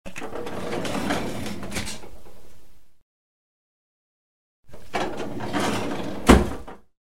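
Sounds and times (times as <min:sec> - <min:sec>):
drawer: 0:00.1 - 0:02.4, 0:04.7 - 0:06.8.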